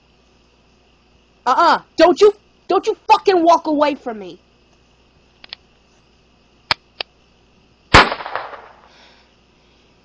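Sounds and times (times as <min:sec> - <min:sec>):
speech: 0:01.5 - 0:04.4
faint sharp clicks: 0:05.4 - 0:05.6
warning gunshot fired in an angry confrontation: 0:07.9 - 0:08.9.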